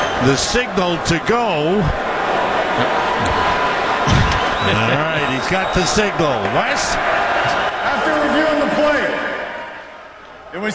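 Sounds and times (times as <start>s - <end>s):
hockey crowd booing the referee during a goal review: 0.0s - 10.4s
speech: 0.2s - 2.0s, 2.8s - 9.0s, 10.5s - 10.7s.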